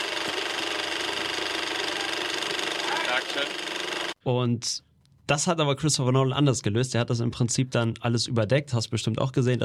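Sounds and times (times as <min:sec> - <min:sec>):
IMAX film camera running: 0:00.0 - 0:04.2
speech: 0:03.3 - 0:09.6.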